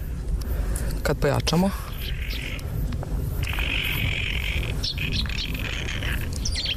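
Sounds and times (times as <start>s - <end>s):
steady low rumbling background: 0.0s - 6.7s
speech: 1.1s - 2.2s
bird chirps: 1.9s - 2.7s, 3.4s - 6.7s
coniferous forest bird song with drawn-out buzzy high notes: 1.9s - 6.7s.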